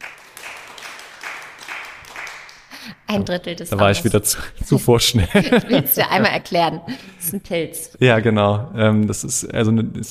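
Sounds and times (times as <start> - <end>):
crowd clapping: 0.0 - 2.9
speech: 2.8 - 10.1
laughter: 3.8 - 7.3.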